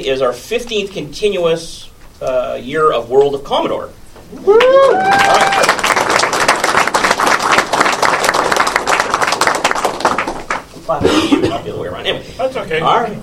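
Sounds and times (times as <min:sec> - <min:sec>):
speech: 0:00.0 - 0:05.6, 0:10.9 - 0:13.2
audience clapping: 0:04.6 - 0:10.8.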